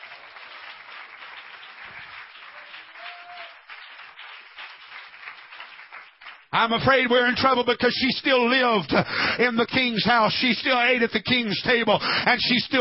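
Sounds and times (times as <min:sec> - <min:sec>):
audience clapping hands: 0:00.0 - 0:08.8
speech: 0:06.5 - 0:12.7.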